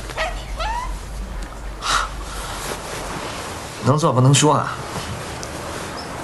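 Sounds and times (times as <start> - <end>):
steady low hum: 0.0 - 5.7
small dog whimpering and yipping: 0.1 - 1.1
speech: 3.9 - 5.0.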